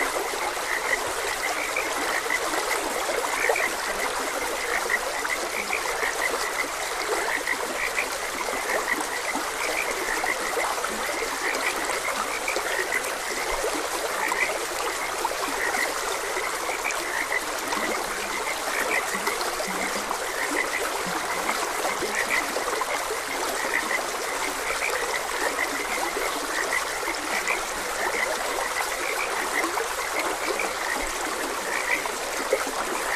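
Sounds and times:
flowing stream: 0:00.0 - 0:33.1
frogs croaking: 0:00.0 - 0:33.1.

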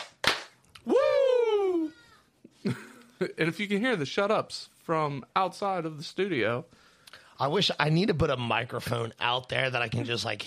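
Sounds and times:
hand claps: 0:00.0 - 0:00.9
long whooping voice sliding down in pitch: 0:00.8 - 0:02.1
speech: 0:02.6 - 0:06.8, 0:07.4 - 0:10.4.

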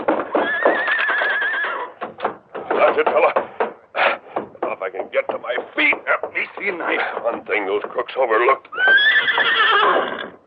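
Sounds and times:
horse whinnying: 0:00.2 - 0:02.0, 0:08.7 - 0:10.4
speech: 0:03.0 - 0:03.4, 0:04.9 - 0:10.3.

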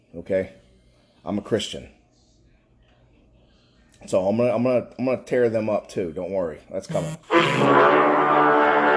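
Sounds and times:
speech: 0:00.1 - 0:00.6, 0:01.2 - 0:02.0, 0:04.0 - 0:08.8
phone notification alert buzzing: 0:06.9 - 0:07.7.

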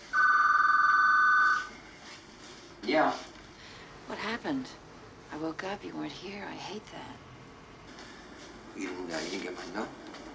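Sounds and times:
telephone ringing electronic trill: 0:00.0 - 0:01.8
speech: 0:02.9 - 0:03.3, 0:04.1 - 0:07.3, 0:08.8 - 0:10.0.

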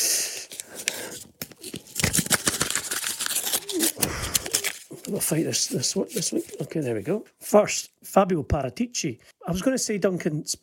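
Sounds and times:
paper tearing and crinkling as a gold envelope is opened: 0:00.5 - 0:06.8
speech: 0:05.1 - 0:10.6.

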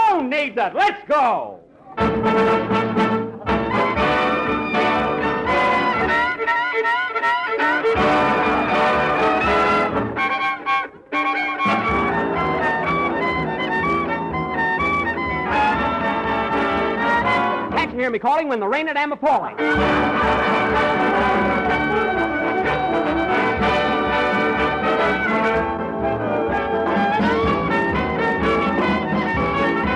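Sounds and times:
speech: 0:00.4 - 0:03.0, 0:18.1 - 0:21.4
hot violin licks: 0:00.8 - 0:29.0
orchestra playing a song: 0:02.0 - 0:18.8, 0:19.4 - 0:29.9.

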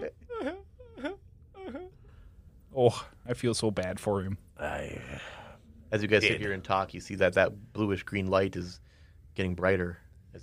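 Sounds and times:
voice imitating a small robot sobbing: 0:00.0 - 0:02.0
speech: 0:02.8 - 0:10.4.

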